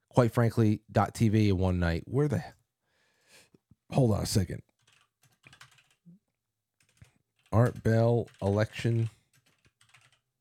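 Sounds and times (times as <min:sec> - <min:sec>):
speech: 0:00.2 - 0:02.6, 0:03.9 - 0:04.7, 0:07.5 - 0:09.2
computer keyboard typing a search: 0:04.7 - 0:06.1, 0:06.8 - 0:10.3.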